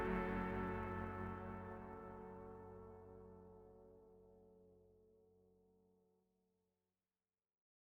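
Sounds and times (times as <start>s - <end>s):
day ambient music stinger: 0.0s - 4.2s.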